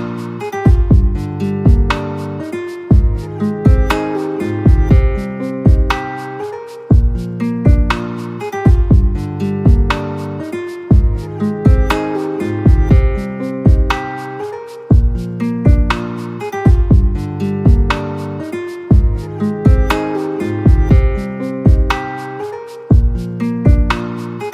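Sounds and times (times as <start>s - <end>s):
instrumental ringtone: 0.6s - 15.9s, 16.5s - 23.9s.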